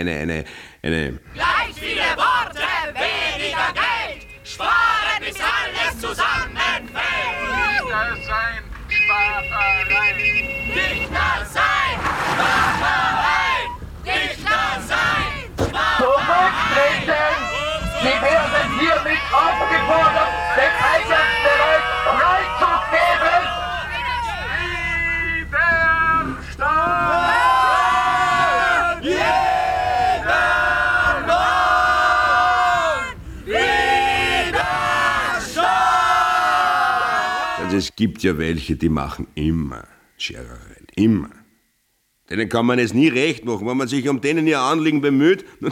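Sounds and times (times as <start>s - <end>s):
speech: 0.0s - 3.8s, 37.8s - 41.4s, 42.3s - 45.7s
crowd shouting and chanting at a rally: 1.3s - 37.9s.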